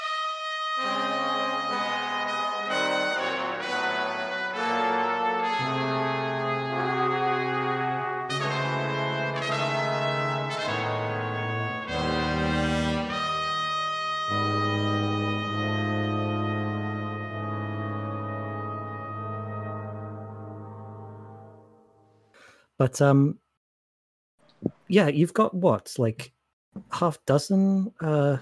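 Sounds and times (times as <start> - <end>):
big band horn arrangement played by five or six brass players: 0.0 - 21.9
speech: 22.8 - 23.4, 24.9 - 28.4.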